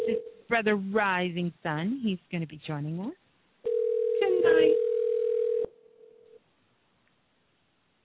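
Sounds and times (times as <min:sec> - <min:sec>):
telephone ringing tone: 0:00.0 - 0:00.4, 0:03.7 - 0:06.4
speech: 0:00.5 - 0:03.2.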